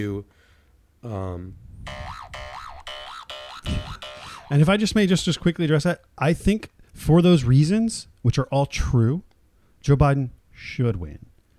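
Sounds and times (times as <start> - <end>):
speech: 0.0 - 0.4, 1.0 - 2.0, 3.6 - 11.3
electronic timer going off: 1.9 - 4.7.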